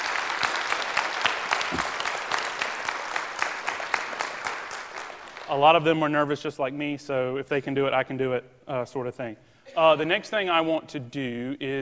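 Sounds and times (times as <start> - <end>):
audience applause: 0.0 - 5.6
speech: 5.5 - 11.7.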